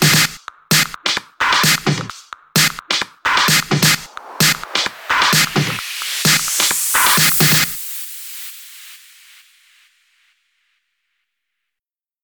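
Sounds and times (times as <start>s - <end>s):
remixed music: 0.0s - 9.2s.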